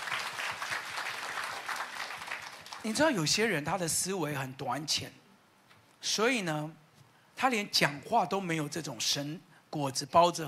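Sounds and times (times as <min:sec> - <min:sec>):
audience clapping hands: 0:00.0 - 0:03.2
speech: 0:02.8 - 0:05.2, 0:06.0 - 0:06.8, 0:07.4 - 0:10.4.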